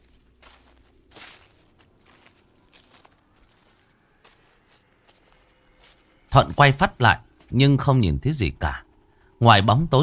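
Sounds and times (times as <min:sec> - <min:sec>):
heavy footsteps: 0:00.0 - 0:07.6
speech: 0:06.3 - 0:08.8, 0:09.4 - 0:10.0.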